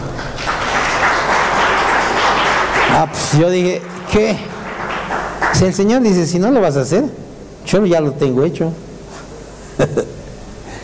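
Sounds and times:
crowd applauding: 0.0 - 6.5
speech: 3.0 - 4.5, 5.5 - 8.8, 9.8 - 10.1.

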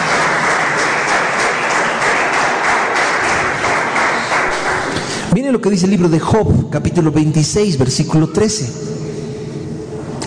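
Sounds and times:
audience applause: 0.0 - 5.3
speech: 5.5 - 9.0.

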